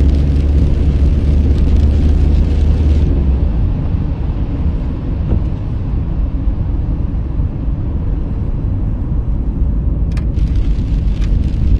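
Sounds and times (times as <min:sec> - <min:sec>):
rain hiss and patter: 0:00.0 - 0:03.0, 0:10.4 - 0:11.7
car engine and road rumble on a country road: 0:00.0 - 0:11.7.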